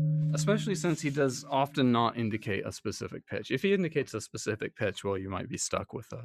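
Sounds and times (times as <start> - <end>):
thick flat festival gong struck: 0.2 - 1.6
speech: 0.4 - 6.2.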